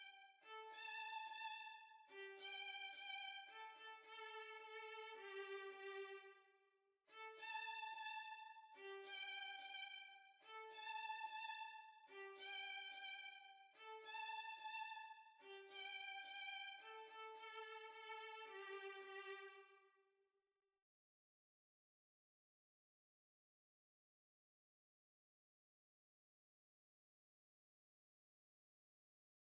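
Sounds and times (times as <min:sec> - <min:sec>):
violin waltz: 0:00.0 - 0:06.3, 0:07.2 - 0:19.6.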